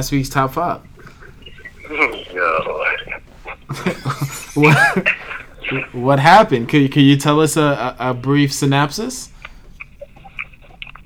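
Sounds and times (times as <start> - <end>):
speech: 0.0 - 0.9, 3.7 - 9.4
laughter: 0.0 - 11.0
low hum: 0.0 - 11.0
person chewing chicken dinner: 0.8 - 6.7, 9.3 - 11.0.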